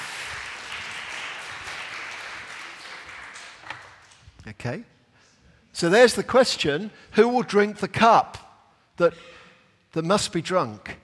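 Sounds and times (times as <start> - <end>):
crowd applause: 0.0 - 4.2
speech: 4.4 - 5.0, 5.8 - 8.4, 9.0 - 11.0.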